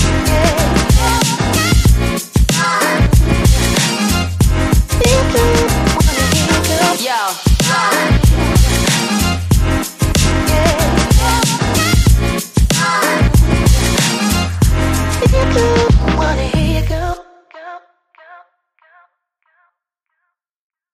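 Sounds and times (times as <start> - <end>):
podcast intro: 0.0 - 16.8.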